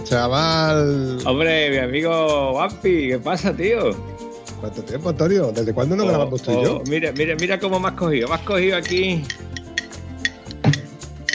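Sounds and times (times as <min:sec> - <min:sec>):
speech: 0:00.1 - 0:09.6
coffee cup clinking: 0:06.5 - 0:08.0, 0:08.8 - 0:11.3.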